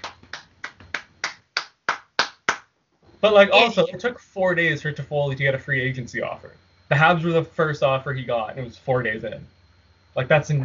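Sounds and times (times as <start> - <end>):
round of applause: 0.0 - 2.7
speech: 3.2 - 9.6, 10.2 - 10.6.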